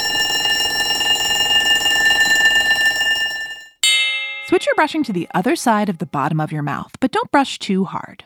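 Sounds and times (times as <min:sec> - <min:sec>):
electric school bell ringing: 0:00.0 - 0:05.4
speech: 0:04.5 - 0:08.2.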